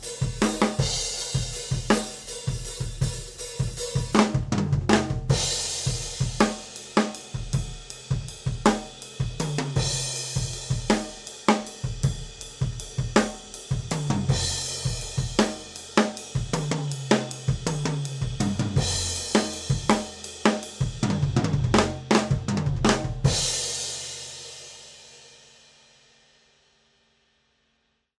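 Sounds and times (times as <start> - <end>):
drums recorded with tube condenser overhead microphones: 0.0 - 27.6.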